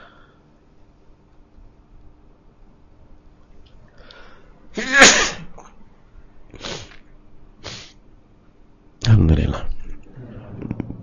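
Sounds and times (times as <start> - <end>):
loud explosive sneeze: 4.8 - 5.6.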